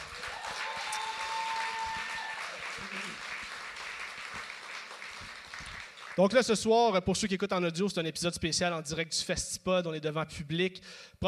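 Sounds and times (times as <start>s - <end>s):
live audience applause: 0.0s - 6.2s
speech: 6.2s - 11.2s.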